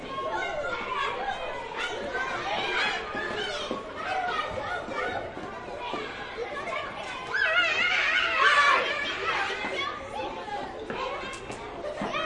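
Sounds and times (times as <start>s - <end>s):
schoolyard ambience: 0.0s - 12.2s.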